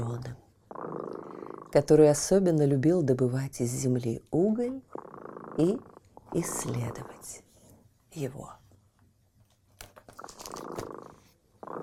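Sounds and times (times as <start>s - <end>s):
cat purring: 0.0s - 2.3s, 4.6s - 7.5s, 10.1s - 11.8s
speech: 1.7s - 5.0s, 5.6s - 7.4s, 8.1s - 8.6s.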